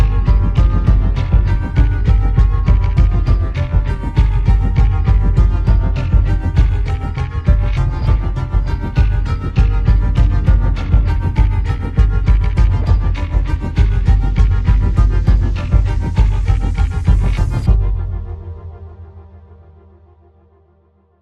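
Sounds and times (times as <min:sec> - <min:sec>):
dissonant music without strings or brass: 0:00.0 - 0:20.1.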